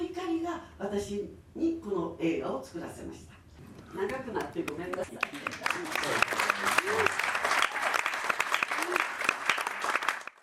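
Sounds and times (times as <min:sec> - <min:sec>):
speech: 0:00.8 - 0:07.2
audience applause: 0:05.0 - 0:10.4.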